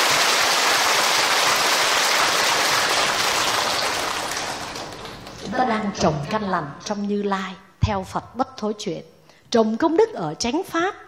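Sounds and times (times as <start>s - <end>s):
crowd applause: 0.0s - 5.6s
speech: 5.7s - 11.0s.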